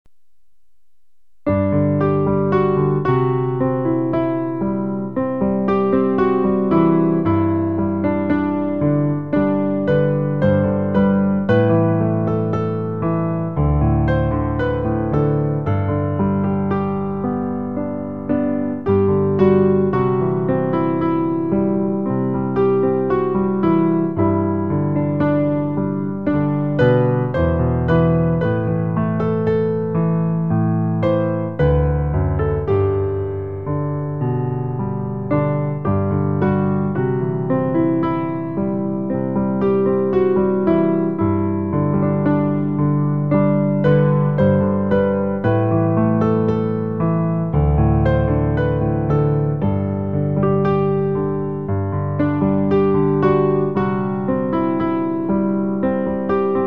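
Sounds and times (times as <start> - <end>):
piano: 0.1 - 56.6.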